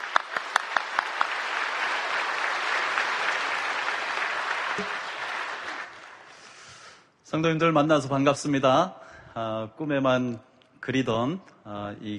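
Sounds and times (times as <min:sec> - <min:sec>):
audience applause: 0:00.0 - 0:06.4
speech: 0:07.3 - 0:12.1.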